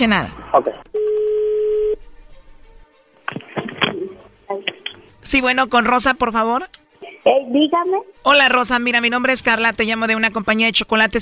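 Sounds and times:
speech: 0:00.0 - 0:01.1, 0:04.5 - 0:11.2
dial tones: 0:00.9 - 0:02.0.

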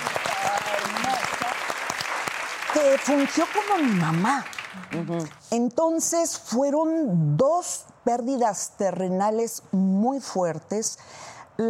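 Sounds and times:
crowd applause: 0:00.0 - 0:05.1
speech: 0:02.8 - 0:11.6.

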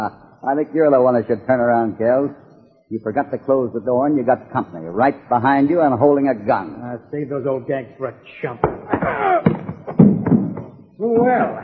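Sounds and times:
speech: 0:00.0 - 0:09.3, 0:11.0 - 0:11.6
brief falling moan: 0:08.9 - 0:09.6.

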